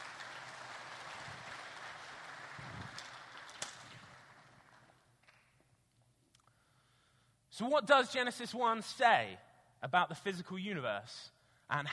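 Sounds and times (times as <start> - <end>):
audience round of applause: 0.0 - 5.0
speech: 7.6 - 11.9.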